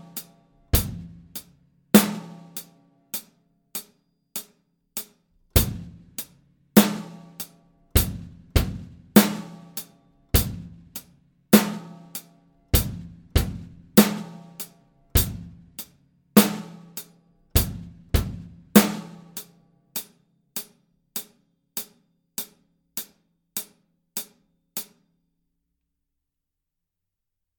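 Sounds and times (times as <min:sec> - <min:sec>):
drum solo: 0:00.0 - 0:02.7, 0:05.6 - 0:09.8, 0:10.4 - 0:12.2, 0:12.8 - 0:17.0, 0:17.6 - 0:19.4.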